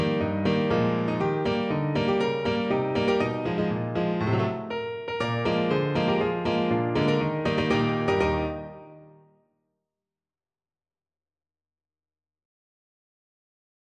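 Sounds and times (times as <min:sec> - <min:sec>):
national anthem played on piano: 0:00.0 - 0:09.3.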